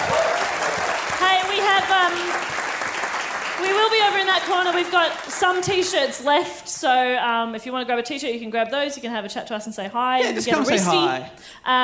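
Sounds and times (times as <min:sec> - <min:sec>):
audience cheering: 0:00.0 - 0:03.8
audience applause: 0:00.0 - 0:06.0
speech: 0:01.8 - 0:02.5, 0:03.6 - 0:11.8.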